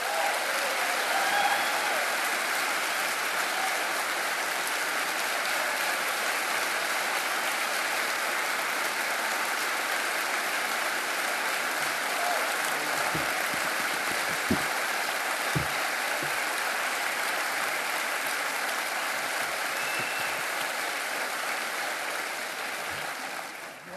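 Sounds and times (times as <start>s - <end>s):
cheers and whoops: 0.0s - 4.0s, 12.1s - 12.6s
large crowd applause: 0.0s - 23.9s.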